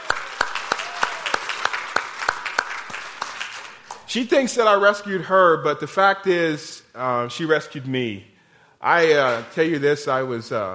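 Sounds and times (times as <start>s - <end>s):
audience cheering and applause: 0.0s - 4.0s
speech: 4.1s - 10.7s.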